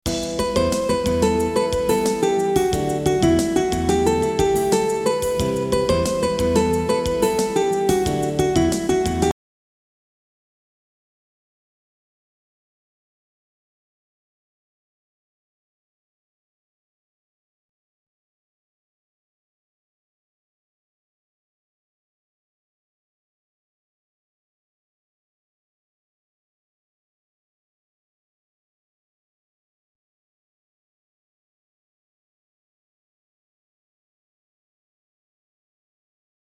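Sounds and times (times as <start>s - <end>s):
intro music: 0.1s - 9.3s.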